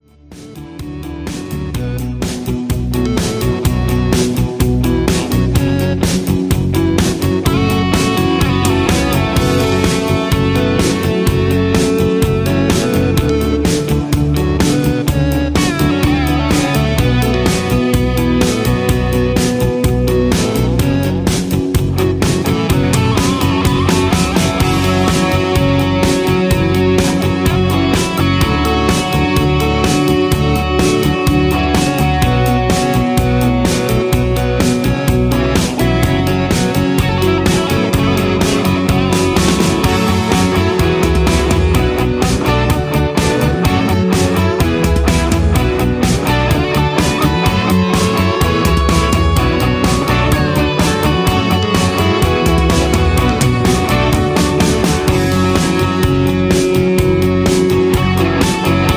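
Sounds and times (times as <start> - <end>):
instrumental music with leads: 0.0 - 58.9.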